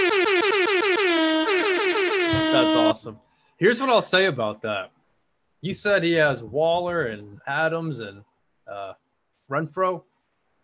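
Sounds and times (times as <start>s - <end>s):
boat horn sound effect: 0.0s - 3.0s
speech: 2.6s - 5.0s, 5.6s - 10.1s.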